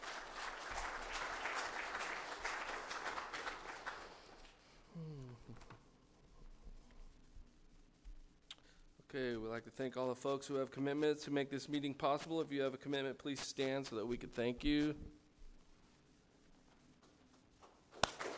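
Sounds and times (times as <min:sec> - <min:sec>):
crowd applauding: 0:00.0 - 0:04.6, 0:18.0 - 0:18.3
speech: 0:09.2 - 0:15.1.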